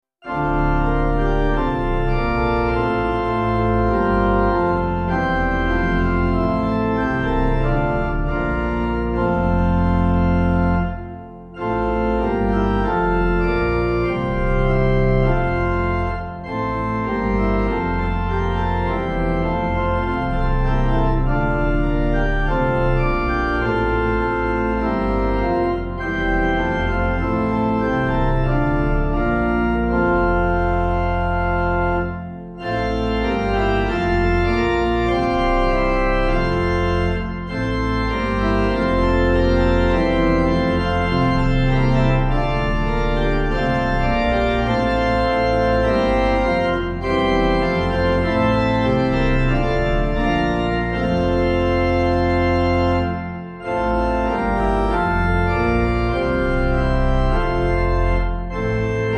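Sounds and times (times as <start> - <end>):
organ playing a hymn: 0.0 - 59.1.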